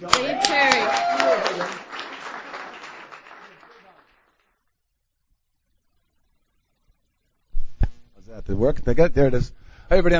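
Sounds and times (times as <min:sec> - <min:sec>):
audience clapping welcoming a speaker at a meeting: 0:00.0 - 0:04.6
speech: 0:08.5 - 0:10.1.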